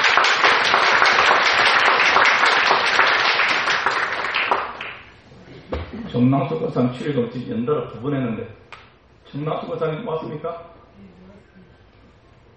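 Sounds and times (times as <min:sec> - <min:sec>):
audience applause: 0:00.0 - 0:05.1
speech: 0:06.2 - 0:08.6, 0:09.3 - 0:11.2.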